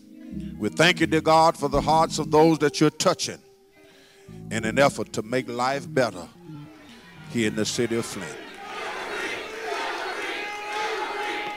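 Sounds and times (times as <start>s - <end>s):
speech: 0.6s - 3.5s, 4.3s - 6.4s, 7.3s - 8.4s
congregation cheering: 6.7s - 11.5s.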